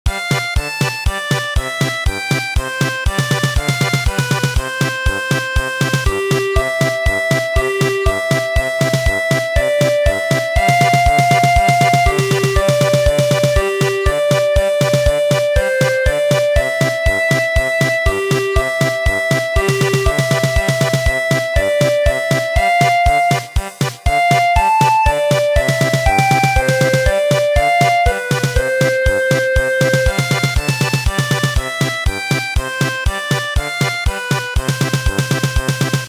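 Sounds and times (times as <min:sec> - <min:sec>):
German polka music: 0:00.1 - 0:36.0.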